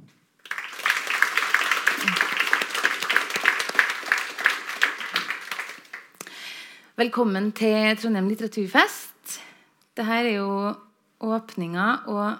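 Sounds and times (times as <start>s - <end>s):
audience applause at the opening of a literature festival in Trondheim: 0.4s - 6.2s
speech: 7.0s - 9.1s, 10.0s - 12.3s.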